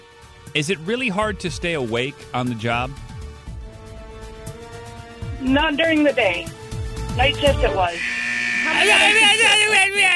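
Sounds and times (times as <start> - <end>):
speech: 0.5 - 3.1, 5.4 - 6.6, 7.2 - 10.1
timer buzzer going off: 7.5 - 10.0
person laughing: 8.7 - 10.0.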